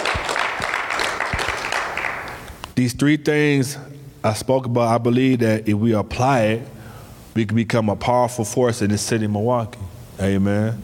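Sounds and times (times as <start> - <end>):
church congregation clapping in praise: 0.0 - 2.8
speech: 2.8 - 6.8, 7.4 - 10.8.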